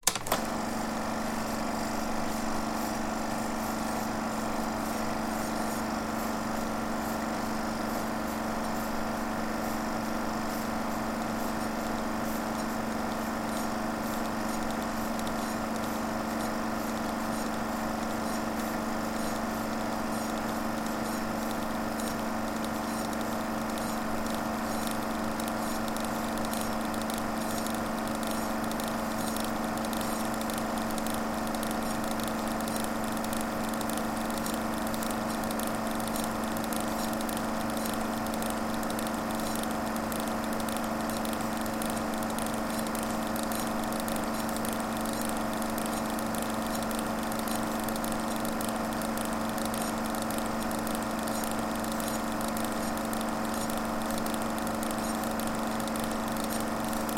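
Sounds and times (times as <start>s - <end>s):
film projector rattling: 0.0s - 57.1s.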